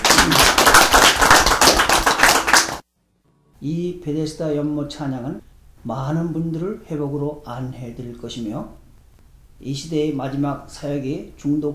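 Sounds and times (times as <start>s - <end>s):
audience applause after a worship song: 0.0s - 2.8s
speech: 3.6s - 8.8s, 9.6s - 11.7s.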